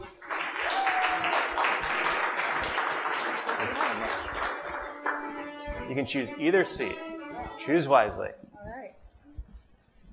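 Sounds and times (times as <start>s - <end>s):
audience applause welcoming a speaker to the stage: 0.0s - 5.3s
speech: 5.9s - 8.4s.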